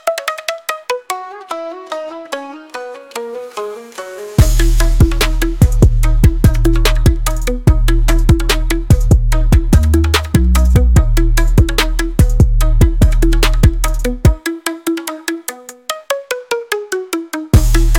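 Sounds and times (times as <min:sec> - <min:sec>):
turntable strains: 0:02.7 - 0:16.2, 0:17.1 - 0:17.9.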